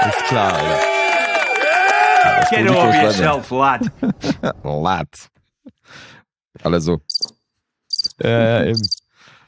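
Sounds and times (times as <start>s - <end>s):
speech: 0.2s - 1.0s, 2.2s - 7.3s, 8.1s - 9.0s
laughter: 2.5s - 4.7s
digital cricket chirping sound effect: 7.1s - 7.3s, 7.9s - 8.2s, 8.7s - 9.0s.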